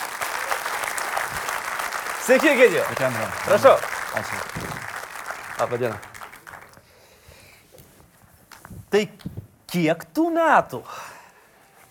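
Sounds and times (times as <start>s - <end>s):
audience applause welcoming a guest onstage: 0.0s - 6.8s
speech: 2.3s - 4.7s, 5.6s - 6.1s, 8.9s - 11.0s.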